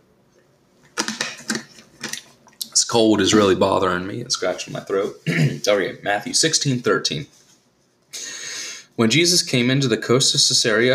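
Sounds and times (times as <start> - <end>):
plastic bottle being squeezed and handled: 0.9 - 2.6
speech: 2.8 - 7.4, 9.0 - 10.9.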